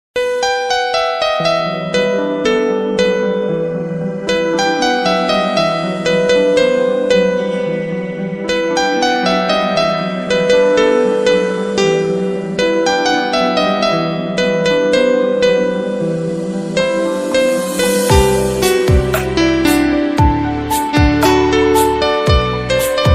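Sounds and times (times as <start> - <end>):
instrumental ringtone music: 0.2 - 23.1.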